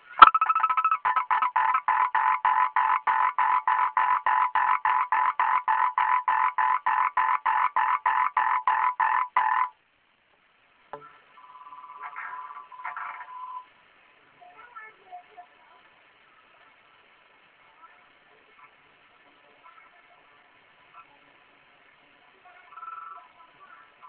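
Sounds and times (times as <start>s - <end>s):
frog croaking: 0.2s - 9.8s, 22.7s - 23.3s.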